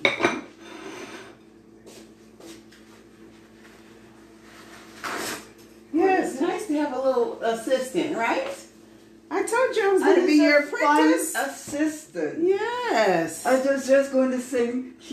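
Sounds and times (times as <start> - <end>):
plate and knife clattering in a kitchen while Trini black cake is prepared: 0.0 - 1.4
speech: 7.0 - 8.6, 9.6 - 15.1.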